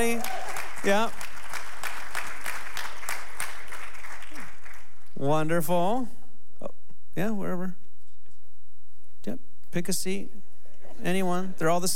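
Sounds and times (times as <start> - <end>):
speech: 0.0 - 1.2, 5.2 - 7.8, 9.2 - 10.4, 11.0 - 11.9
audience applause: 0.0 - 5.1.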